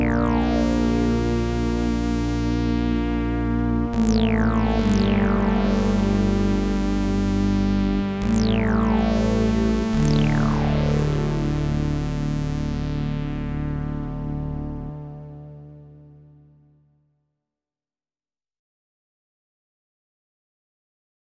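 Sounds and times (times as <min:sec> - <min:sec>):
Andromeda A6 multimode synth lead: 0:00.0 - 0:16.7.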